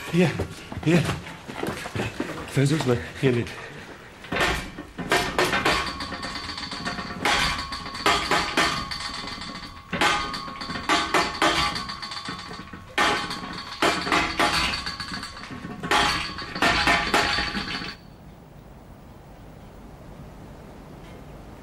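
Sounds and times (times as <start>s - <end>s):
speech: 0.1s - 1.3s, 2.5s - 3.7s
knocking signals: 4.3s - 18.1s.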